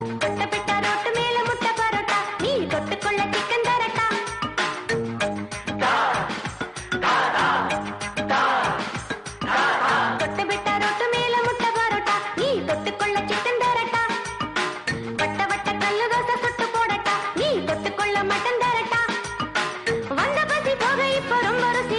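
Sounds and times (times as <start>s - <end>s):
Tamil song ringtone: 0.0s - 21.9s.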